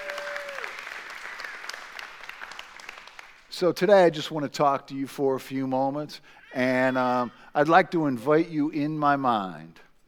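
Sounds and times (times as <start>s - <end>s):
audience clapping hands: 0.0s - 3.5s
speech: 3.6s - 9.8s.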